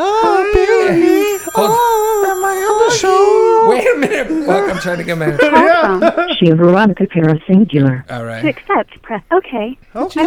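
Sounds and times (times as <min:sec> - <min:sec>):
laughter: 0:00.0 - 0:06.6
phone ringtone electronic melody: 0:00.8 - 0:03.7
speech: 0:04.0 - 0:10.2.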